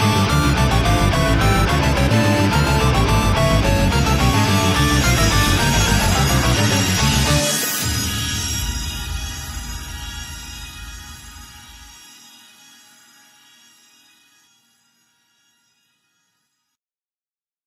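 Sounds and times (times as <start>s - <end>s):
metal music: 0.0s - 13.0s.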